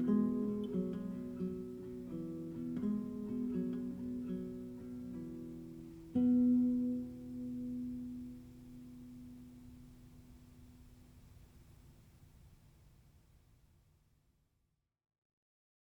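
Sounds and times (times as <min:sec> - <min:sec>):
children's song arranged for classical guitar: 0:00.0 - 0:11.8.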